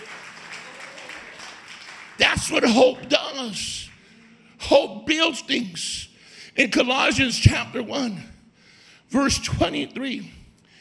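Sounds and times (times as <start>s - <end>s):
audience clapping: 0.0s - 4.4s
speech: 2.2s - 3.9s, 4.7s - 8.3s, 9.1s - 10.4s.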